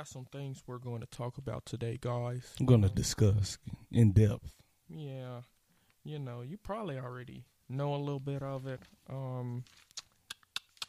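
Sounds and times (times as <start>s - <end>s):
speech: 0.0s - 10.0s
book pages turning: 8.4s - 10.8s.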